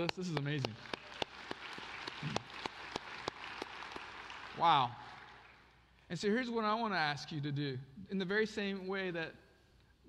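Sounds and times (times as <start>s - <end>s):
speech: 0.0s - 1.3s, 4.6s - 5.0s, 6.1s - 9.4s
audience clapping: 0.0s - 6.0s.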